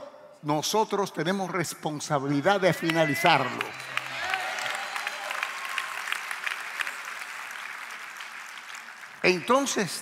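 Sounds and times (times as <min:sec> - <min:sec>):
speech: 0:00.4 - 0:03.9, 0:09.3 - 0:09.9
crowd applauding: 0:02.6 - 0:09.9.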